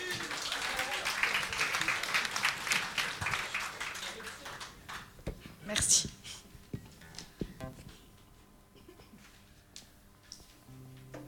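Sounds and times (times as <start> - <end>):
audience applause: 0.0 - 5.2
speech: 5.7 - 6.1.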